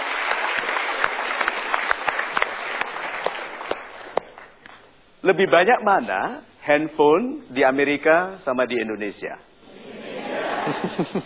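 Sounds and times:
audience applause: 0:00.0 - 0:04.5
speech: 0:05.2 - 0:09.9, 0:10.7 - 0:11.2
laughter: 0:09.7 - 0:11.2.

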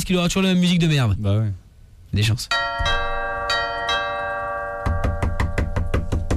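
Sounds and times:
speech: 0:00.1 - 0:02.9
doorbell ringing: 0:02.5 - 0:06.2
knocking on door: 0:04.8 - 0:06.3.

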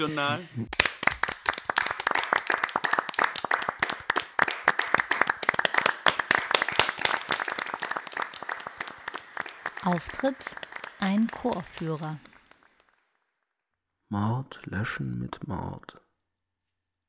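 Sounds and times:
speech: 0:00.0 - 0:00.9, 0:09.8 - 0:12.3, 0:14.1 - 0:16.0
hand clapping: 0:00.6 - 0:13.2.

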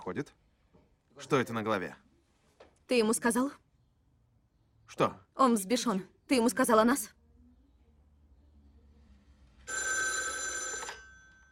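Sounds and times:
speech: 0:00.0 - 0:00.5, 0:01.2 - 0:02.1, 0:02.9 - 0:03.6, 0:04.9 - 0:07.2
telephone ringing: 0:09.7 - 0:11.5.

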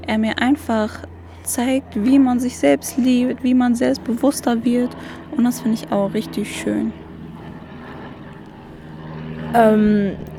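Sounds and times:
airplanes flying: 0:00.0 - 0:10.3
speech: 0:00.1 - 0:07.0, 0:09.5 - 0:10.3.

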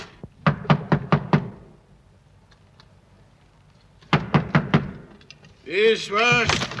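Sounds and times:
knocking on a door: 0:00.4 - 0:01.6
speech: 0:05.7 - 0:06.7.

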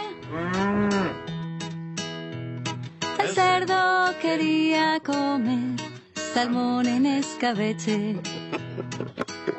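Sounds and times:
cow mooing: 0:00.1 - 0:01.3
speech: 0:03.4 - 0:05.8, 0:06.4 - 0:09.3
laughter: 0:07.8 - 0:09.5.

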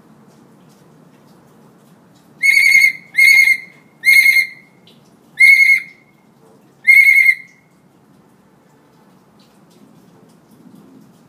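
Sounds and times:
hill myna whistling: 0:02.4 - 0:04.7, 0:05.4 - 0:06.0, 0:06.9 - 0:07.5.

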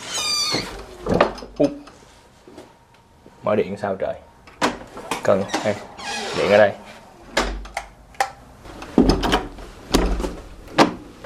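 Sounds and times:
speech: 0:00.5 - 0:01.8, 0:03.5 - 0:04.3, 0:05.3 - 0:06.9
old fort door in Goliad, Texas, pushed shut with a foot: 0:09.0 - 0:11.0.

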